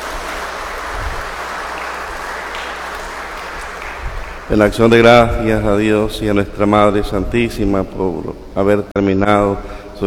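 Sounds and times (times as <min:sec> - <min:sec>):
crowd applause: 0:00.0 - 0:04.6
speech: 0:04.5 - 0:10.0.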